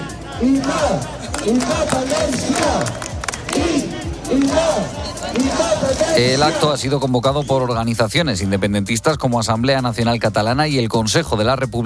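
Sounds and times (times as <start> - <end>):
protest crowd shouting and chanting: 0.0 - 7.7
speech: 0.4 - 11.8
sharp claps: 0.6 - 4.6.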